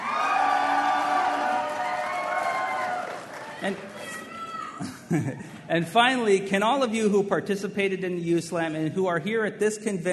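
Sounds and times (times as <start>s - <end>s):
crowd cheering: 0.0s - 4.9s
speech: 3.6s - 4.2s, 4.8s - 10.1s.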